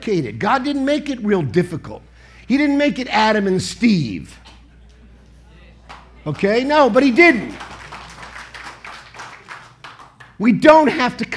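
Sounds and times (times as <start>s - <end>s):
speech: 0.0s - 4.4s, 6.2s - 7.7s, 10.4s - 11.3s
audience clapping: 5.9s - 10.4s.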